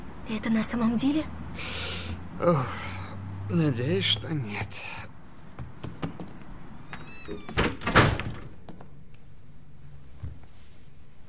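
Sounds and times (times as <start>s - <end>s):
speech: 0.3s - 2.9s, 3.5s - 5.1s, 7.3s - 7.7s
door rattling: 5.9s - 8.7s.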